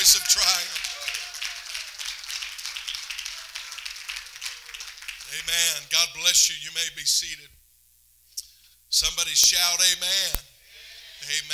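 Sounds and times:
speech: 0:00.0 - 0:00.9, 0:05.3 - 0:07.6, 0:08.9 - 0:10.5, 0:11.2 - 0:11.5
audience clapping: 0:00.0 - 0:05.9.

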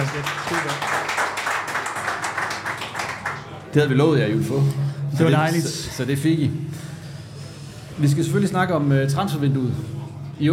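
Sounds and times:
speech: 0:00.0 - 0:01.2, 0:03.7 - 0:06.9, 0:08.0 - 0:10.5
audience applause: 0:00.0 - 0:03.6.

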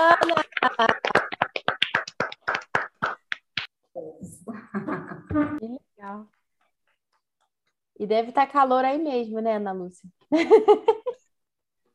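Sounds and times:
speech: 0:00.0 - 0:01.2, 0:08.1 - 0:11.0
applause: 0:00.0 - 0:03.7.

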